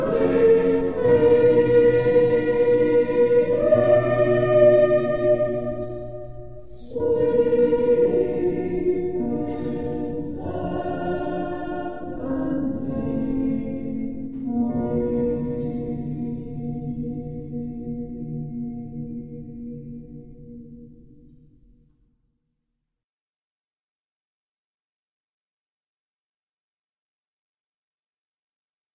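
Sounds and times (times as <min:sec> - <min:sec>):
Christmas choir singing: 0:00.0 - 0:20.8.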